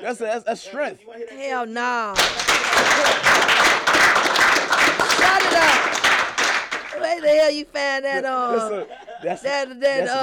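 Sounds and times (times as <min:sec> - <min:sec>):
speech: 0:00.0 - 0:04.2, 0:05.0 - 0:06.0, 0:07.0 - 0:10.2
small group sparse hand claps: 0:02.2 - 0:07.0
laughter: 0:02.4 - 0:03.5, 0:08.1 - 0:10.2.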